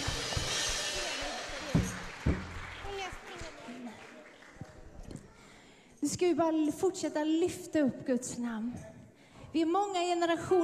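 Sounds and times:
audience applause: 0.0 - 5.7
speech: 6.2 - 8.9, 9.5 - 10.6.

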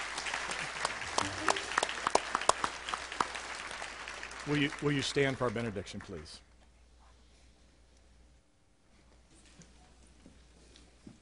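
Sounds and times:
audience applause: 0.0 - 6.3
speech: 4.5 - 6.5.

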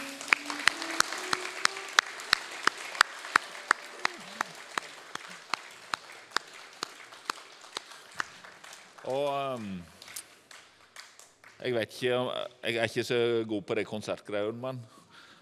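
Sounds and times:
rhythmic audience applause: 0.0 - 11.8
speech: 9.1 - 10.0, 11.6 - 15.0.

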